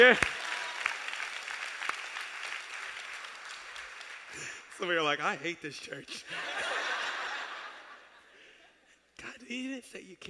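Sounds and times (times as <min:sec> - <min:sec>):
speech: 0:00.0 - 0:00.4, 0:04.8 - 0:06.7, 0:09.5 - 0:10.2
audience applause: 0:00.0 - 0:04.6
laughter: 0:06.1 - 0:08.6.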